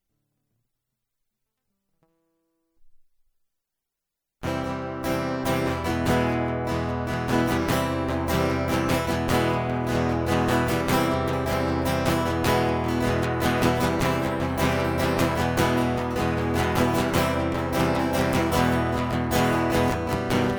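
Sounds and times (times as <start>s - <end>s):
guitar prequel: 4.4s - 20.5s.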